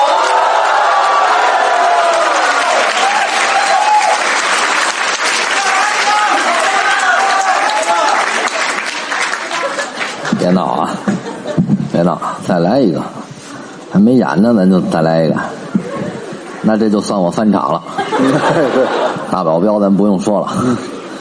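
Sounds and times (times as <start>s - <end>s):
audience applause: 0.0s - 10.8s
laughter: 8.3s - 11.8s, 15.5s - 16.6s, 17.8s - 19.6s, 20.4s - 21.1s
speech: 11.6s - 13.2s, 13.9s - 15.6s, 16.6s - 20.9s.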